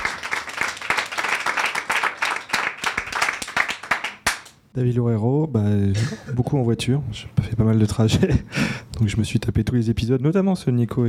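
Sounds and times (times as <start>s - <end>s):
applause: 0.0s - 4.6s
speech: 4.8s - 11.0s.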